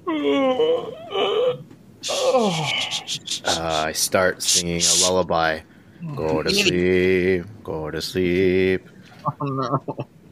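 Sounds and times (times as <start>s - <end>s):
speech: 0.1s - 1.3s, 2.0s - 10.1s
person imitating a loud yawn: 0.1s - 3.8s.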